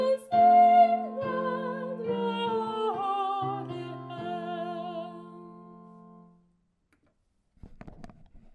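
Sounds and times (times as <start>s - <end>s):
soprano voice: 0.0s - 5.9s.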